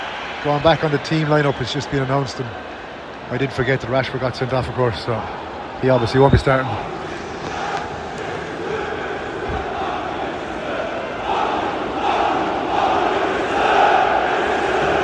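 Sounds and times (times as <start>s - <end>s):
speech: 0.4s - 2.7s, 3.3s - 7.0s
local football fans in Istanbul chanting abuse: 6.7s - 15.0s.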